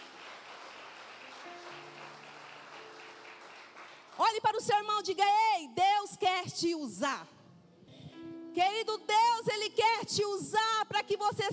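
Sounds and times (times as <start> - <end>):
audience applause: 0.0 - 4.2
speech: 4.3 - 7.4, 8.6 - 11.5.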